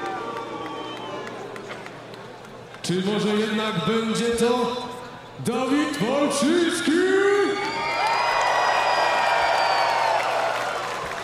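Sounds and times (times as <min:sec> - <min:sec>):
crowd cheering and whooping: 0:00.0 - 0:01.9, 0:07.4 - 0:11.2
speech: 0:02.9 - 0:07.4.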